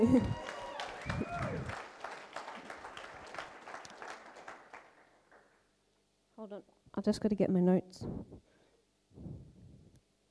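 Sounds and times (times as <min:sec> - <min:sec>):
speech: 0:00.0 - 0:00.4, 0:06.5 - 0:08.5
audience cheering and applause: 0:00.0 - 0:05.0.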